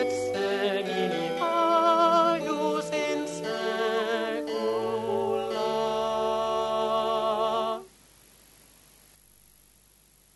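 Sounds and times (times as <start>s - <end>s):
choral sacred music: 0.0s - 7.9s.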